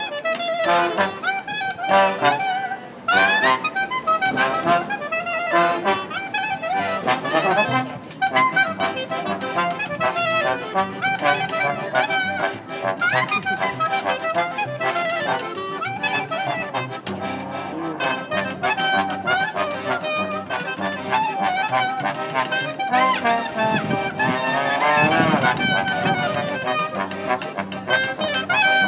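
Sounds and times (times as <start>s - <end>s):
klezmer band playing in Spitalfields: 0.0s - 28.8s.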